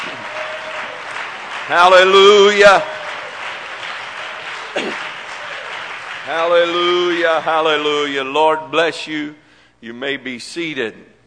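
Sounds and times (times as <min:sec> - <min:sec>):
audience applauding: 0:00.0 - 0:08.4
speech: 0:01.7 - 0:02.9, 0:06.3 - 0:11.1.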